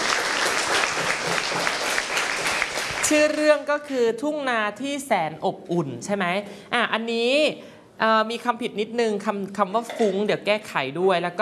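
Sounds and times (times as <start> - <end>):
audience applause: 0.0 - 3.2
speech: 3.1 - 11.3.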